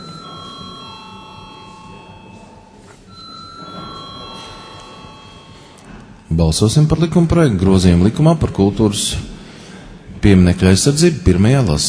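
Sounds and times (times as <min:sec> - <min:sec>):
electric bell ringing in a parliament chamber before a vote: 0:00.0 - 0:06.1
speech: 0:06.3 - 0:09.3, 0:10.2 - 0:11.8.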